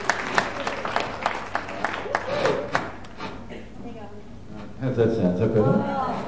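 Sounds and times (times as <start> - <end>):
scattered audience clapping welcoming a woman: 0.0 - 3.2
speech: 4.8 - 6.1.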